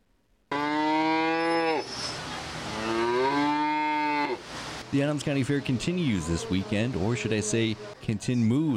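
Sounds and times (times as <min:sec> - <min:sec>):
cow mooing in the beef barn at the Adams County Fair: 0:00.5 - 0:01.9, 0:02.7 - 0:04.4
speech: 0:04.9 - 0:08.7.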